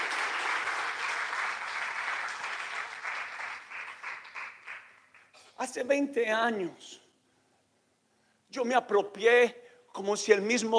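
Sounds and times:
audience applause: 0.0 - 5.3
speech: 5.6 - 7.0, 8.5 - 10.7.

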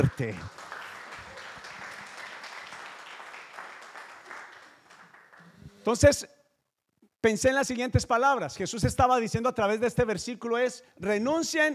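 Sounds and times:
speech: 0.0 - 0.6, 5.8 - 6.4, 7.2 - 11.7
audience applause: 0.0 - 5.8.

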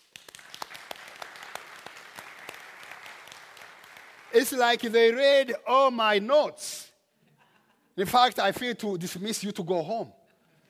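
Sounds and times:
crowd applauding: 0.0 - 4.9
speech: 4.4 - 6.9, 8.0 - 10.2.

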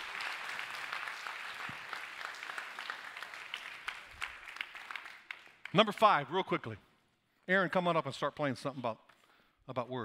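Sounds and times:
audience applause: 0.0 - 5.8
speech: 5.7 - 6.9, 7.5 - 9.0, 9.7 - 10.0.

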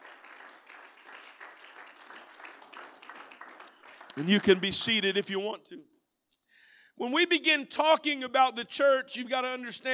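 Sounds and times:
audience clapping: 0.0 - 5.2
speech: 4.2 - 6.0, 7.0 - 9.9.

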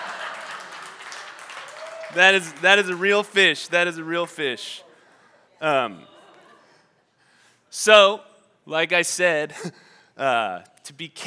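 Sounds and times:
audience applause: 0.0 - 4.5
speech: 2.1 - 4.8, 5.6 - 6.1, 7.7 - 11.2.

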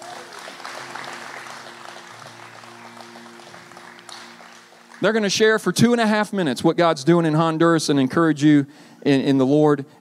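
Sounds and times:
audience applause: 0.0 - 5.8
speech: 5.0 - 9.9.

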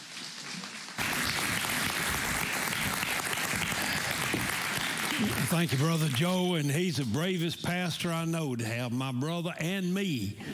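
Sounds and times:
church congregation applauding to welcome a guest preacher: 0.0 - 7.3
speech: 5.2 - 10.5.

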